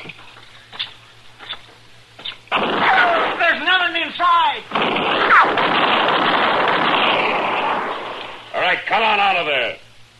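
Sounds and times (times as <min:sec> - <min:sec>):
noisy hiss: 0:00.0 - 0:10.1
gunshot in a radio drama: 0:02.5 - 0:03.5, 0:04.7 - 0:08.2
speech: 0:08.9 - 0:09.8.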